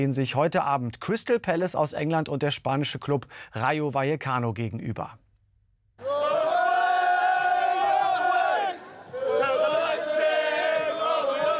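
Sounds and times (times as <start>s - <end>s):
speech: 0.0s - 5.2s
football fans singing in stadium: 6.0s - 11.5s.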